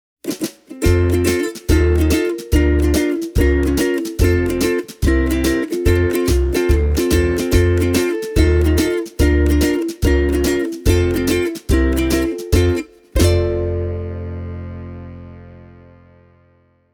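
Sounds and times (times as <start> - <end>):
Ortega guitar playing: 0.4 - 16.6.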